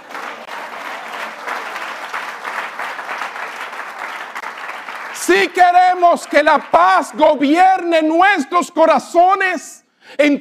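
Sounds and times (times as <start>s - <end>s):
applause: 0.0s - 7.6s
speech: 5.2s - 10.4s.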